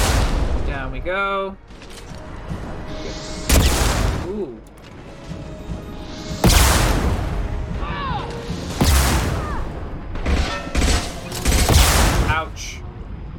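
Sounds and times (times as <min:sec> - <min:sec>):
rocket explosions in a video game: 0:00.0 - 0:00.8, 0:03.4 - 0:04.4, 0:06.3 - 0:07.9, 0:08.6 - 0:12.6
speech: 0:00.9 - 0:01.8, 0:04.3 - 0:05.4.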